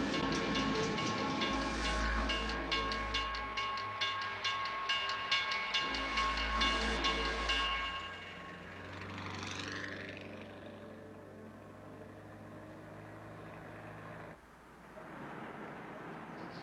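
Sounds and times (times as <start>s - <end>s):
train rolling past a railroad crossing: 0.0s - 10.7s
sustained tonal ringing at railroad crossing: 0.0s - 13.2s.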